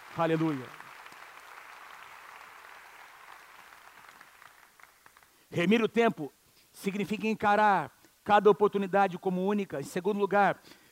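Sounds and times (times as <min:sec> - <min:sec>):
audience applauding: 0:00.0 - 0:05.4
speech: 0:00.2 - 0:00.8, 0:05.6 - 0:10.8.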